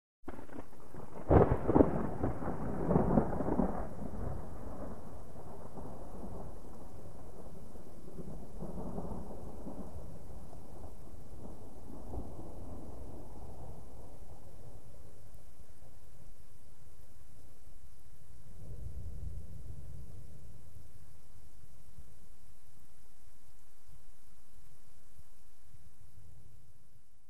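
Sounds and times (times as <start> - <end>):
small crackling thunder: 0.3 - 17.1, 18.4 - 22.0
light rain on pine: 0.3 - 27.2.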